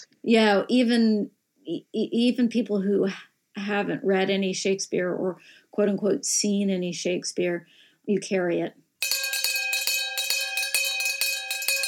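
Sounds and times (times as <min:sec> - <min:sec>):
speech: 0:00.0 - 0:09.2
theatre interval bell ringing: 0:09.0 - 0:11.8.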